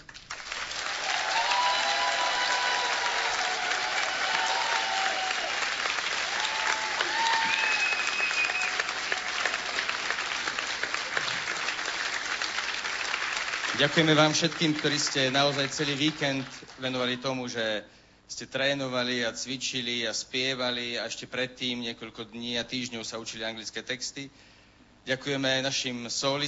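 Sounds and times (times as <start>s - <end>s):
audience applause: 0.0s - 16.7s
speech: 13.8s - 26.4s.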